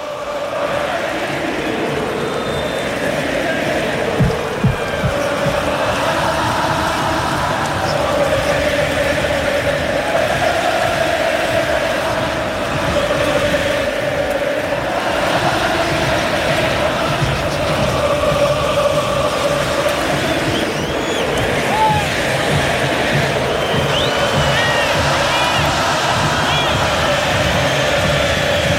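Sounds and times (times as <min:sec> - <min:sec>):
Argentine football supporters chanting in stadium: 0:00.0 - 0:28.7.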